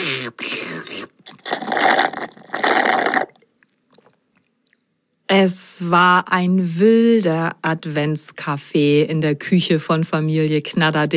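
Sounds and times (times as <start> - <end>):
speech: 0.0 - 0.5, 5.4 - 11.1
slurping juice: 0.0 - 3.4.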